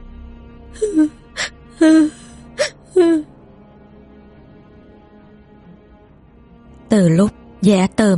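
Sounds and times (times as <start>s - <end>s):
speech: 0.7s - 1.2s, 1.8s - 2.2s, 6.9s - 8.1s
woman sobbing and wailing: 0.8s - 3.2s.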